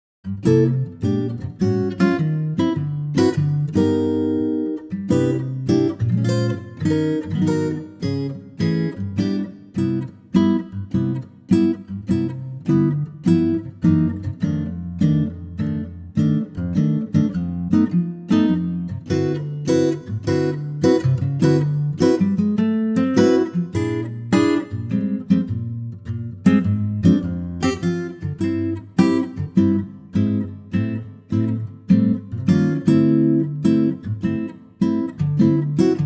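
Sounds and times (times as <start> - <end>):
acoustic guitar in C: 0.2 - 36.0.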